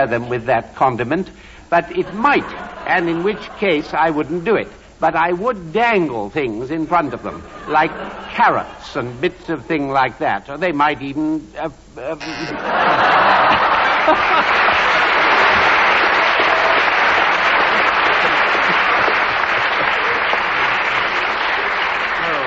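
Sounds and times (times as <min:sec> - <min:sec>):
speech: 0:00.0 - 0:14.7
laughter: 0:01.8 - 0:04.1, 0:07.0 - 0:09.2, 0:12.2 - 0:22.4
audience applause: 0:12.5 - 0:22.4.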